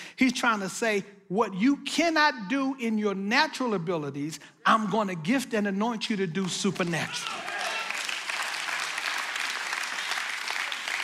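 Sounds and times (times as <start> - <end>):
speech: 0.2 - 7.5
audience applause: 7.1 - 11.0.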